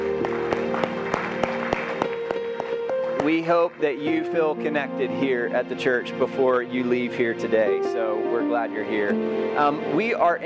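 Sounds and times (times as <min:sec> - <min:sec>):
church congregation clapping to welcome guests: 0:00.0 - 0:04.0
sustained musical tones: 0:00.0 - 0:10.4
speech: 0:03.2 - 0:10.4.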